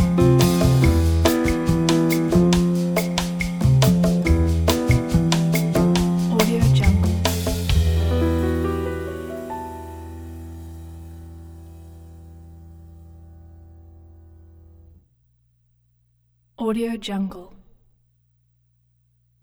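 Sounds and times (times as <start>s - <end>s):
bossa nova music: 0.0s - 14.4s.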